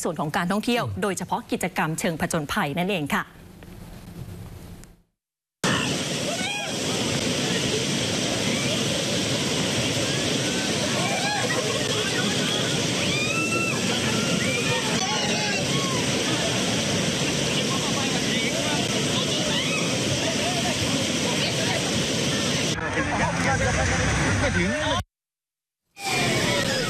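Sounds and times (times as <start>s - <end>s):
speech: 0.0s - 3.4s
rushing white water on Khlong Song Phraek stream in Phang Nga: 5.6s - 25.0s, 26.0s - 26.8s.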